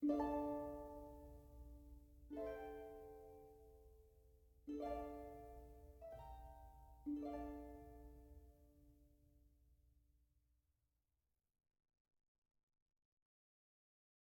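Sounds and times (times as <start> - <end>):
harp: 0.0 - 8.8.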